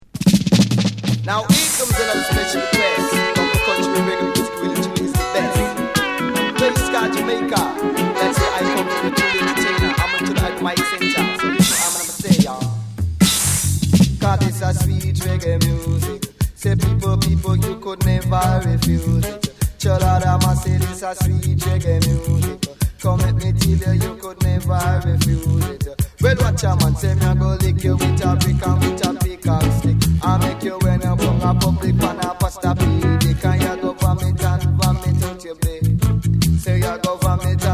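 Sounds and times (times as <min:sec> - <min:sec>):
sweet reggae music: 0:00.0 - 0:37.7.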